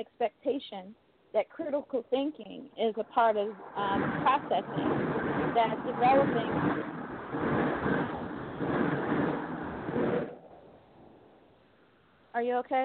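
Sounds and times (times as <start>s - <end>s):
speech: 0.0s - 7.5s, 12.4s - 12.8s
train going by: 3.0s - 10.5s.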